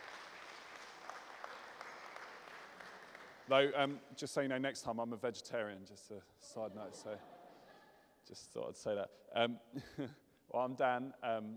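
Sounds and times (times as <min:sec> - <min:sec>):
audience applause: 0:00.0 - 0:03.7
speech: 0:03.5 - 0:07.4, 0:08.3 - 0:11.5.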